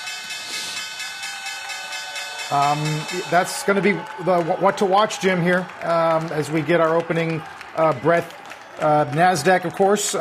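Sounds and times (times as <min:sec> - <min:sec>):
stock exchange opening bell ringing: 0:00.0 - 0:04.1
speech: 0:02.5 - 0:10.1.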